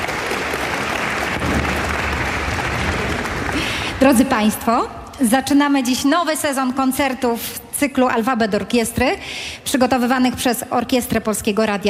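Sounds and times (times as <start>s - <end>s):
audience applause for an orchestra: 0.0s - 4.3s
speech: 4.0s - 11.8s.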